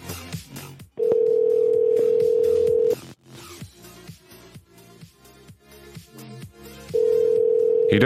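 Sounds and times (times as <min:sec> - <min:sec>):
telephone ringing tone on an outgoing call: 0:01.0 - 0:03.0, 0:07.0 - 0:08.0.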